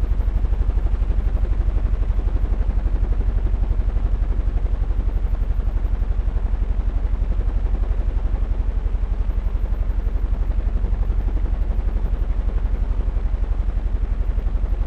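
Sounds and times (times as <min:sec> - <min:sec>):
giant fan blade low-frequency rumble: 0:00.0 - 0:14.8.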